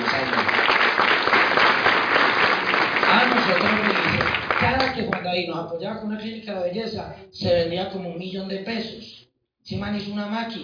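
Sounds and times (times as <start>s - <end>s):
audience applause: 0.0s - 5.2s
speech: 5.0s - 10.6s.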